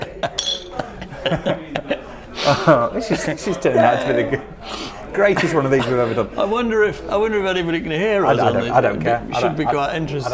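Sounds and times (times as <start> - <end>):
dishes clinking while emptying a dishwasher: 0.2 - 0.9
speech: 1.2 - 1.8, 2.5 - 4.5, 5.2 - 10.3.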